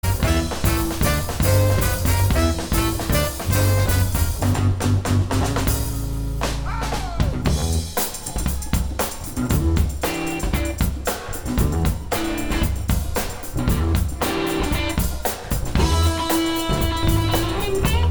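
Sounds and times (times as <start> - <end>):
funky soul music: 0.0 - 18.0.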